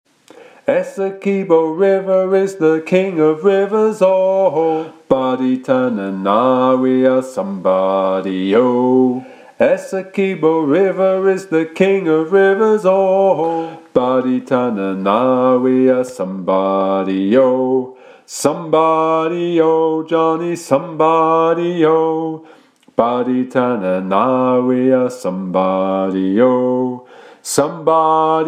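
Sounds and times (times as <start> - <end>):
bass voice singing sea shanty teaching track: 0.6 - 28.4.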